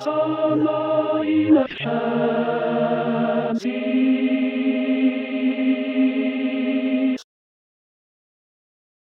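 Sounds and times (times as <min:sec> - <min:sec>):
tenor voice singing a mass: 0:00.0 - 0:07.2.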